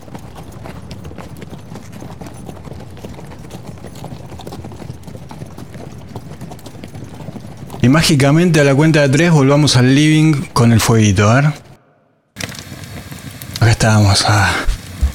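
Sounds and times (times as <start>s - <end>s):
horse hooves clip-clopping: 0.0s - 10.2s, 12.4s - 13.6s, 14.7s - 15.1s
speech: 7.8s - 11.6s, 13.8s - 14.7s.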